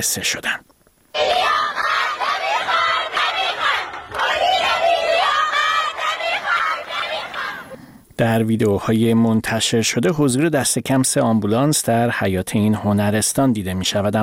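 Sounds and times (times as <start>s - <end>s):
speech: 0.0s - 1.5s, 8.2s - 14.2s
large crowd of students chanting protest slogans: 1.2s - 7.9s.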